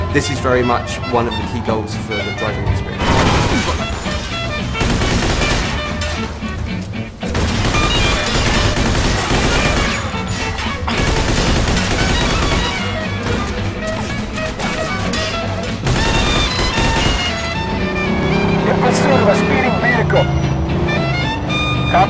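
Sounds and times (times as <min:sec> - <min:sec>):
constant roar: 0:00.0 - 0:22.0
speech: 0:00.1 - 0:04.0
Tommy gun fire: 0:04.8 - 0:05.9, 0:07.3 - 0:10.1, 0:10.9 - 0:12.9, 0:15.8 - 0:17.5.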